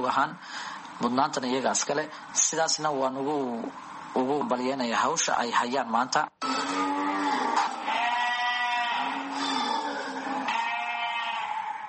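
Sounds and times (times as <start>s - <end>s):
speech: 0.0s - 6.9s
sheep and goats bleating among livestock herds exported through Djibouti: 6.4s - 11.8s.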